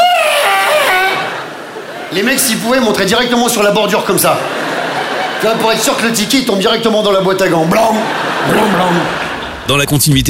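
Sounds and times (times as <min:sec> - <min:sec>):
voice imitating screeching car tyres: 0:00.0 - 0:01.4
laughter: 0:00.2 - 0:09.7
speech: 0:02.1 - 0:04.7, 0:05.4 - 0:10.2.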